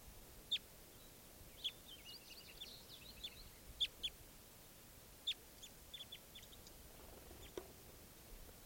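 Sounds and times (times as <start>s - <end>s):
soft hiss: 0.0s - 8.6s
small caged birds chirping and twittering: 0.3s - 8.6s.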